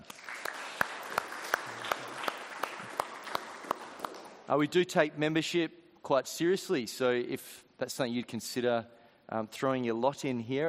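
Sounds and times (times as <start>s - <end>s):
clapping: 0.0s - 4.4s
speech: 4.5s - 10.6s.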